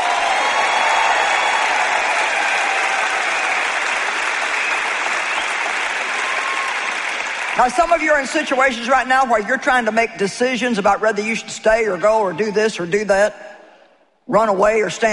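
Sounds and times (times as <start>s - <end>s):
audience clapping loudly: 0.0s - 8.7s
speech: 7.6s - 13.5s, 14.3s - 15.1s.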